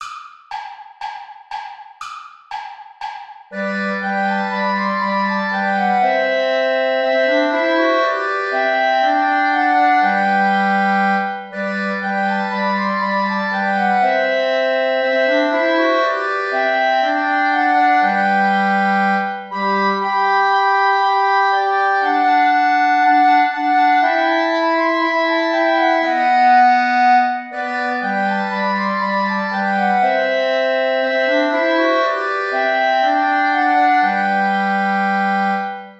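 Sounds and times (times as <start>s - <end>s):
play-along backing music without clarinet: 0.0s - 35.9s.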